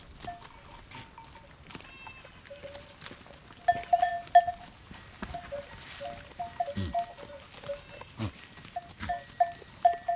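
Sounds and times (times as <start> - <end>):
goat bleating: 1.8 - 2.7, 6.6 - 10.1
bells ringing: 3.6 - 4.7, 5.3 - 8.0, 8.8 - 10.1.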